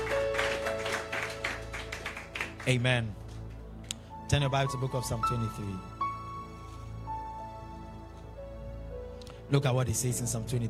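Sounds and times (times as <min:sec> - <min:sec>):
audience clapping: 0:00.0 - 0:03.6
speech: 0:02.6 - 0:03.2, 0:04.3 - 0:05.9, 0:09.5 - 0:10.6.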